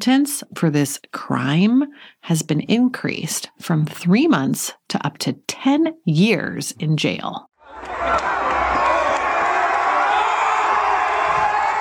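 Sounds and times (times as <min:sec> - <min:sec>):
speech: 0:00.0 - 0:08.3
crowd cheering at a Black Lives Matter protest in Bristol, England: 0:07.6 - 0:11.7.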